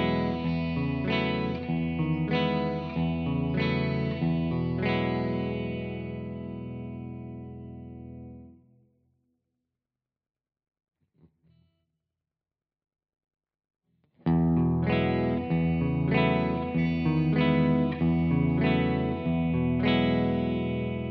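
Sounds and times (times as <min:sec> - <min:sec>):
clean chords in all positions: 0:00.0 - 0:08.5, 0:14.5 - 0:21.1.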